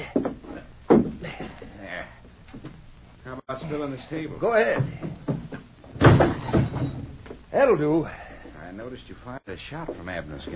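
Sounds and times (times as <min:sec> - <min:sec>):
chair kicked over: 0:00.0 - 0:01.5, 0:04.8 - 0:07.4
speech: 0:03.6 - 0:05.1, 0:07.6 - 0:08.2, 0:08.8 - 0:10.5.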